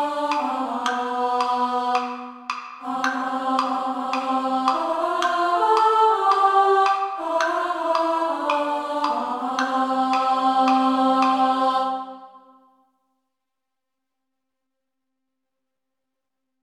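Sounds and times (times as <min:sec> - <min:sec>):
women singing descant: 0:00.0 - 0:12.6.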